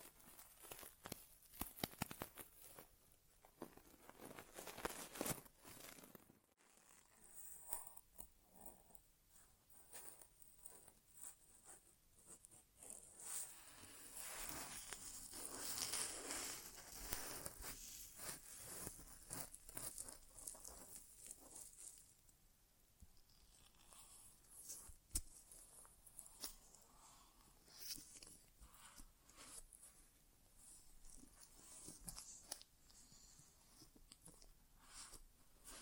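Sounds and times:
crackly rustles and scraping of an inner ear exam: 0.0 - 22.4, 23.0 - 35.8
sharp clicks and pops: 0.6 - 2.8.

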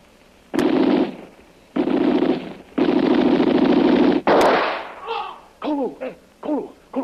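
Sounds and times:
loud harsh buzzing bursts: 0.5 - 4.8
sharp gunshots: 0.5 - 5.0.

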